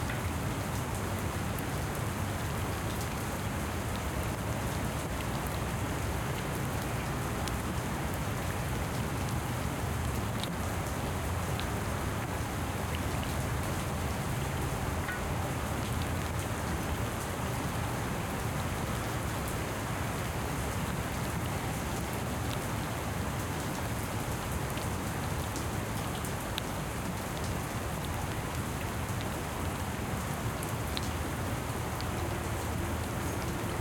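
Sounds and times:
rain on concrete: 0:00.0 - 0:33.7
drips on metal: 0:14.4 - 0:15.7.

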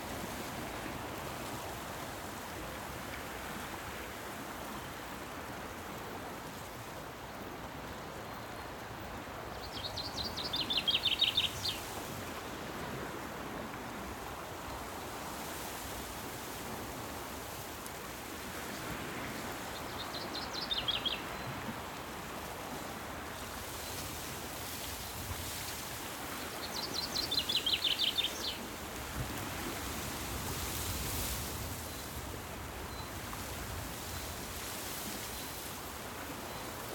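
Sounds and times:
distant sea waves: 0:00.0 - 0:36.9
rural summer birdsong: 0:09.5 - 0:11.9, 0:19.7 - 0:21.5, 0:26.6 - 0:28.6.

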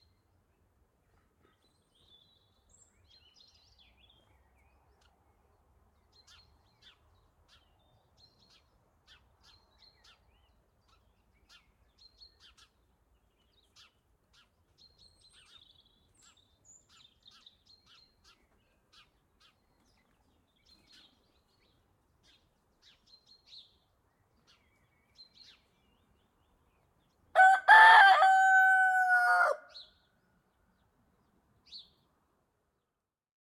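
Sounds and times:
birds in the countryside by day: 0:00.0 - 0:32.2
rooster in the countryside by day: 0:27.4 - 0:29.8.

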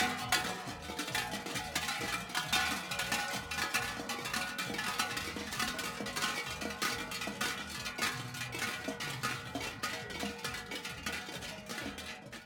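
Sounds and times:
folk custom bell ringers' bells: 0:00.0 - 0:12.4.

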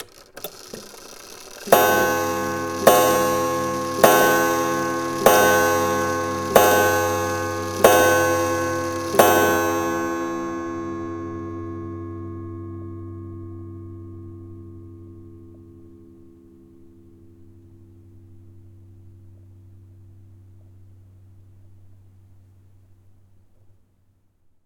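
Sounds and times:
antique clock mechanism: 0:00.0 - 0:11.8.

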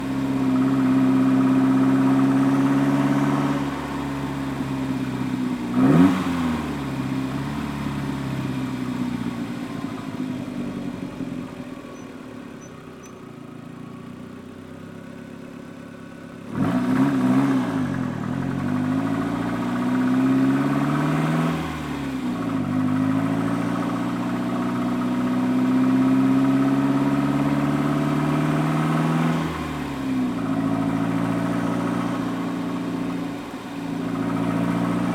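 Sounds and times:
Toyota endurance race car with Audi engine driving, stopping and reversing: 0:00.0 - 0:35.1.

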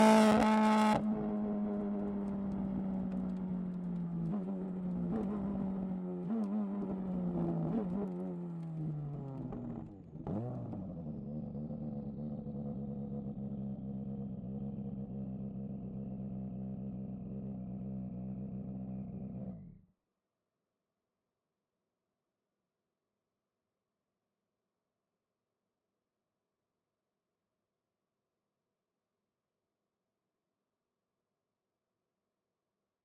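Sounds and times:
Ford Puma Hybrid Rally1 2022 WRC car exhaust onboard driving and launch control: 0:00.0 - 0:19.9.

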